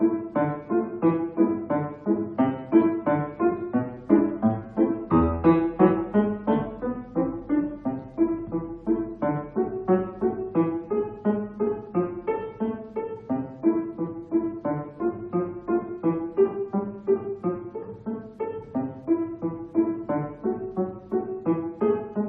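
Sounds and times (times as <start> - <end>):
piano duet practice: 0.0 - 22.2.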